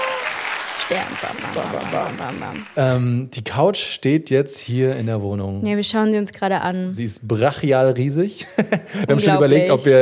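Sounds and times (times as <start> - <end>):
inserted crowd applause sound effect: 0.0 - 3.1
speech: 0.9 - 9.9
laughter: 8.4 - 9.8.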